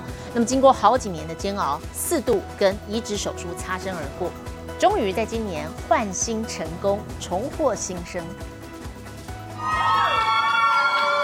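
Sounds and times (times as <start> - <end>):
speech: 0.4 - 8.6
crowd cheering at an airport: 9.5 - 11.2.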